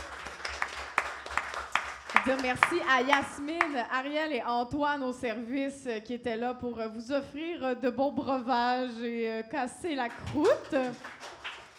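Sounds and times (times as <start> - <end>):
audience applause: 0.0 - 3.7, 10.2 - 11.7
speech: 2.2 - 11.3.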